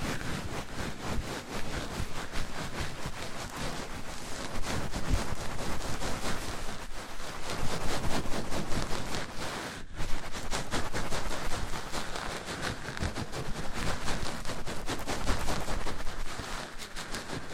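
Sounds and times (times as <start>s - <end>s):
mic-on-mic rubbing and scraping: 0.0s - 17.5s.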